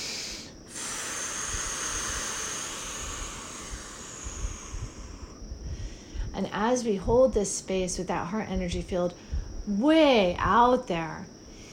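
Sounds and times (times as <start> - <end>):
deep breath: 0.0 - 6.4, 9.2 - 9.6, 11.4 - 11.7
speech: 6.4 - 11.4.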